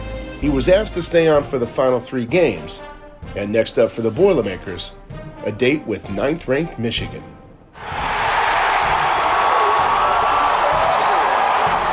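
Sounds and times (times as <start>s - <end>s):
speech: 0.4s - 8.0s
stadium crowd celebrating at Ross-Ade Stadium: 7.8s - 11.9s.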